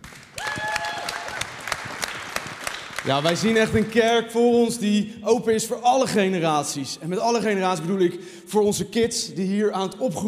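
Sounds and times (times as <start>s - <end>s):
audience applause: 0.0s - 4.0s
speech: 3.0s - 10.2s.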